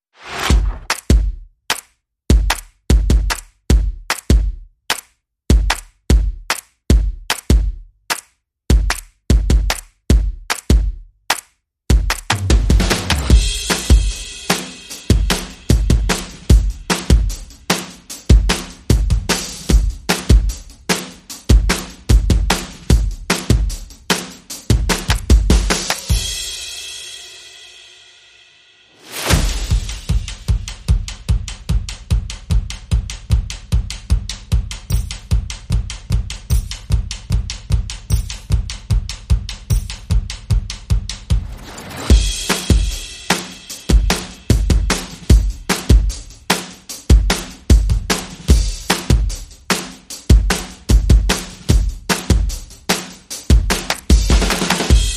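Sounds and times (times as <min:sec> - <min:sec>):
drums playing: 0:00.3 - 0:01.4, 0:02.3 - 0:04.6, 0:05.5 - 0:07.8, 0:08.7 - 0:10.9, 0:11.9 - 0:27.3, 0:29.2 - 0:55.1.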